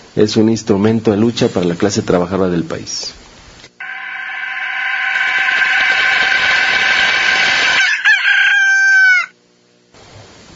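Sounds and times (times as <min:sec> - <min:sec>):
speech: 0:00.2 - 0:03.2
rooster crowing: 0:03.8 - 0:09.4.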